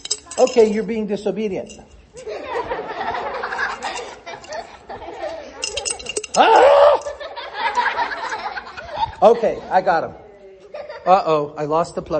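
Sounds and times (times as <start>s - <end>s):
coins shaken out of a coin bank: 0.0s - 2.3s, 3.6s - 4.7s, 5.6s - 7.2s
speech: 0.4s - 2.3s, 9.2s - 10.2s, 11.1s - 12.1s
laughter: 2.2s - 9.9s, 10.6s - 11.2s.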